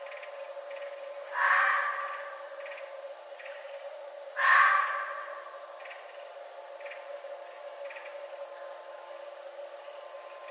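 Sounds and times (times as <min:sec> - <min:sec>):
constant humming tone: 0:00.0 - 0:10.4
Red fox call: 0:01.4 - 0:02.3, 0:04.4 - 0:05.4.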